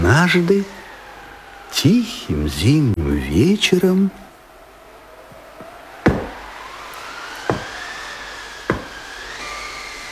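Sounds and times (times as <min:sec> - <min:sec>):
speech: 0:00.2 - 0:00.8, 0:01.7 - 0:04.2
knocking at a door: 0:06.1 - 0:06.4, 0:07.5 - 0:07.8, 0:08.7 - 0:09.0.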